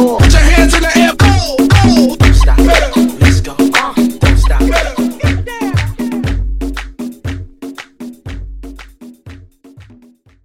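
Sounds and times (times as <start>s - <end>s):
DJ intro outro transition music: 0.2s - 6.9s.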